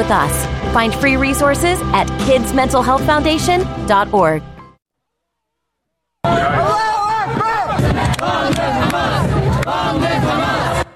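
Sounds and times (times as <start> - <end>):
speech: 0.0 - 4.5
protest crowd chanting: 6.2 - 10.9.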